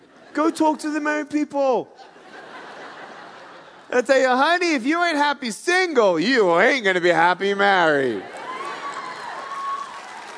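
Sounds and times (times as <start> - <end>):
speech: 0.4 - 2.1, 3.9 - 8.3
laughter: 1.8 - 4.3
audience clapping: 8.0 - 10.3.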